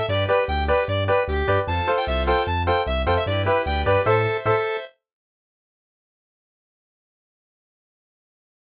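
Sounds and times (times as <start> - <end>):
easy polka music: 0.0 - 5.0.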